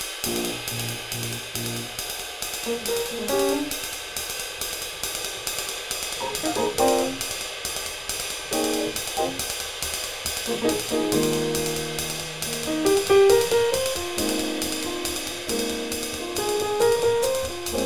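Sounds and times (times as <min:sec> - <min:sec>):
music without bass: 0:00.2 - 0:02.1, 0:02.7 - 0:03.9, 0:06.2 - 0:07.4, 0:08.5 - 0:09.4, 0:10.5 - 0:17.8.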